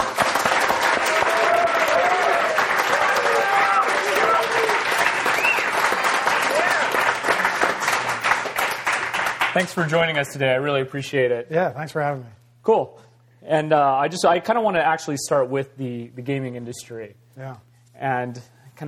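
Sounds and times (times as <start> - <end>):
audience applause welcoming a tech company CEO on stage: 0.0 - 9.8
speech: 9.6 - 18.8.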